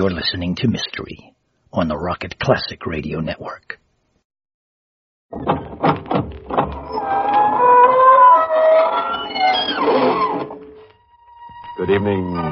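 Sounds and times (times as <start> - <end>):
speech: 0.0 - 3.8, 5.3 - 5.7, 11.8 - 12.4
squeaking door opening: 5.4 - 10.8.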